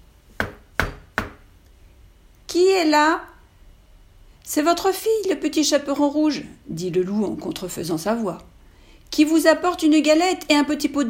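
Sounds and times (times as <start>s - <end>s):
knocking on a door: 0.4s - 1.4s
speech: 2.6s - 3.3s, 4.5s - 8.5s, 9.1s - 11.0s.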